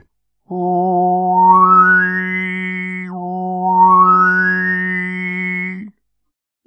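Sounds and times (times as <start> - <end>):
lip technique sound in Ü position: 0.8 - 5.9.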